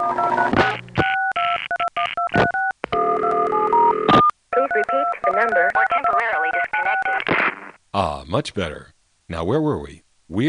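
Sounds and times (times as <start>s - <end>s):
touch-tone DTMF dialing beeps on the New York City telephone network: 0.0s - 7.2s
speech: 8.3s - 10.4s.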